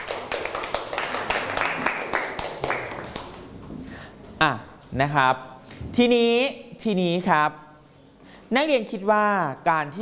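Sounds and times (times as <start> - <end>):
classroom applause for a classmate: 0.0 - 3.5
speech: 4.4 - 7.6, 8.5 - 10.0.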